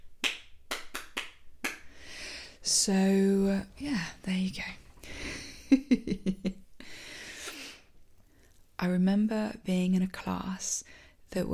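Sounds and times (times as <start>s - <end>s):
hand claps: 0.1s - 1.9s
speech: 2.6s - 4.8s, 5.8s - 6.5s, 8.9s - 11.5s.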